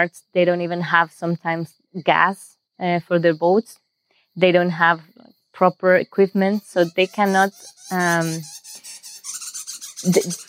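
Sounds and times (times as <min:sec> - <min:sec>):
speech: 0:00.0 - 0:03.8, 0:04.4 - 0:08.6, 0:10.0 - 0:10.4
galago calling: 0:06.6 - 0:10.4.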